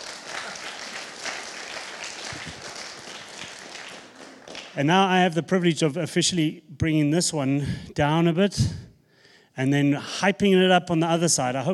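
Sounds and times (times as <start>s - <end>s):
audience clapping: 0.0s - 4.9s
speech: 4.8s - 8.9s, 9.6s - 11.7s.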